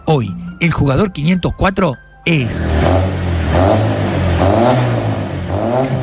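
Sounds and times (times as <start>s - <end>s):
speech: 0.2s - 5.0s
old rusty Peugeot 504 car engine starting and revving: 2.5s - 6.0s.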